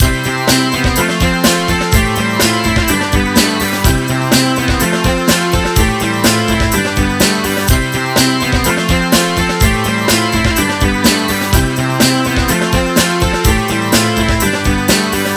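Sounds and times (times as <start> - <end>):
garage music: 0.0 - 15.3.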